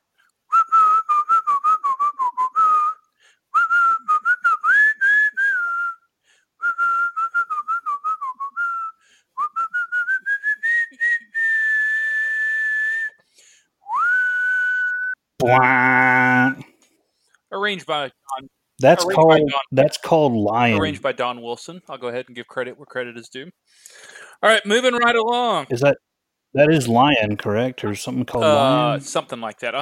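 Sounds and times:
person whistling a melody: 0.5 - 13.2, 13.8 - 15.2
speech: 15.4 - 15.8, 17.7 - 18.2, 18.8 - 29.7.

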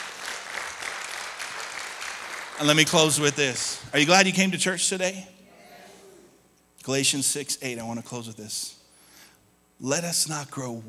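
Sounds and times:
applause: 0.0 - 3.9
speech: 2.6 - 5.4, 6.8 - 8.8, 9.8 - 10.8.

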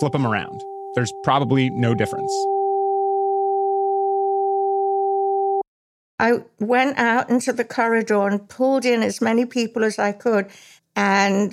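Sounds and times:
speech: 0.0 - 2.6, 6.2 - 11.5
alternating high and low pure electronic tones: 0.0 - 5.6.

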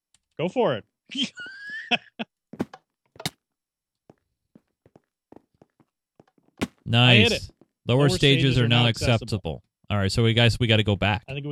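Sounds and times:
speech: 0.4 - 2.3, 6.9 - 11.4
video-game footsteps running and jumping in the Diversity 2 parkour map: 1.4 - 3.4, 4.0 - 7.9.

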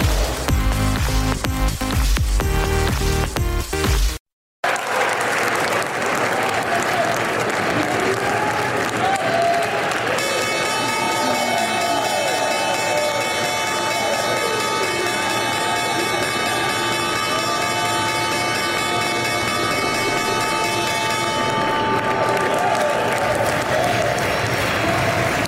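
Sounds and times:
applause: 0.0 - 3.2, 4.6 - 25.4
stock exchange opening bell ringing on Wall Street: 10.2 - 23.2.

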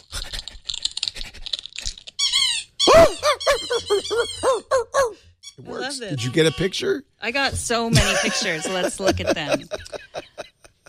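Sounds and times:
app sound effect of eating and chewing: 0.0 - 2.4
laughter: 3.0 - 4.4, 7.6 - 10.8
speech: 3.8 - 5.0, 5.8 - 10.0.

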